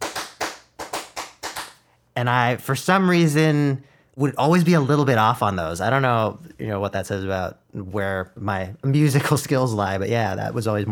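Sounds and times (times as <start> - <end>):
hands clapping a two-bar syncopated rhythm: 0.0 - 1.9
speech: 2.2 - 10.9.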